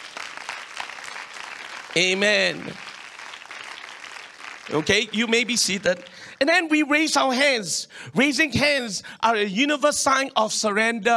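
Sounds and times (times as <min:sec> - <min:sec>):
audience clapping: 0:00.0 - 0:06.6
speech: 0:02.0 - 0:02.9, 0:04.7 - 0:11.1.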